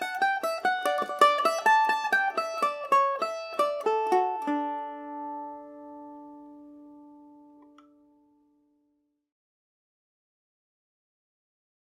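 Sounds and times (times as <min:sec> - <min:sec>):
Falder mandolin playing: 0:00.0 - 0:08.5.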